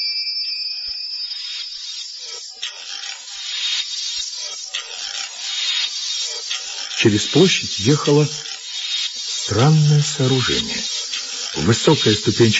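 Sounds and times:
loud harsh bell ringing: 0:00.0 - 0:02.0
speech: 0:07.0 - 0:08.5, 0:09.5 - 0:11.0, 0:11.6 - 0:12.5.

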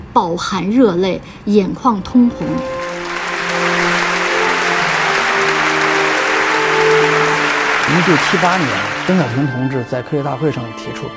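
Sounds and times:
speech: 0:00.2 - 0:03.0, 0:08.0 - 0:11.1
large audience of scientists applauding at the 1978 National Science Conference in Beijing: 0:02.6 - 0:09.9.

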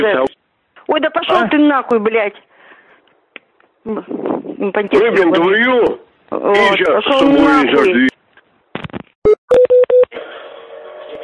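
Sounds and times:
speech: 0:00.0 - 0:02.5, 0:03.8 - 0:08.1
telephone keypad button tones: 0:09.5 - 0:10.0.

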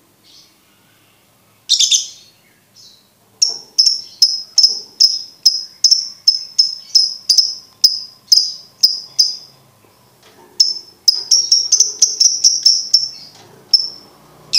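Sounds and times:
lovebird chirping: 0:00.2 - 0:09.6, 0:10.6 - 0:14.5.

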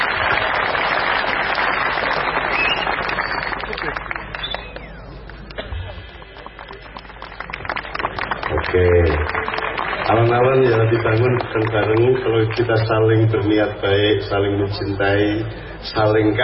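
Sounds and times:
audience applause at a religious talk gathering: 0:00.0 - 0:13.0
speech: 0:10.6 - 0:16.4.

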